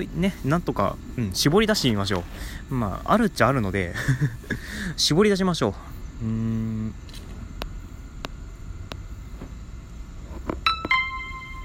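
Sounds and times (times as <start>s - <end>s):
speech: 0.0s - 7.2s
laughter: 3.9s - 4.8s
doorbell ding-dong chime: 10.7s - 11.6s.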